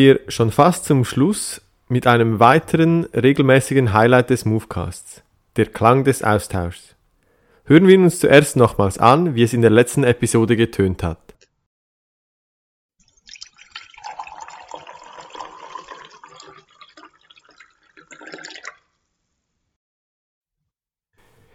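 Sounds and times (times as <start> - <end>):
speech: 0.0 - 6.9, 7.7 - 11.3
tea being poured: 13.0 - 19.0.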